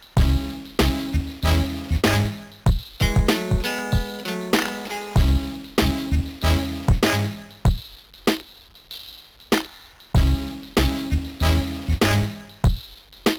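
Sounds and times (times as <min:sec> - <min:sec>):
background music: 0:00.0 - 0:07.8, 0:10.2 - 0:12.7.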